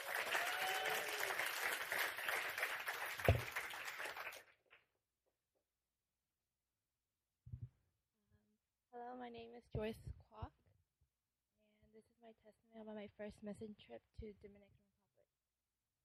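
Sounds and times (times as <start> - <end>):
crowd applauding: 0.0 - 4.6
speech: 9.3 - 10.2, 12.2 - 14.8.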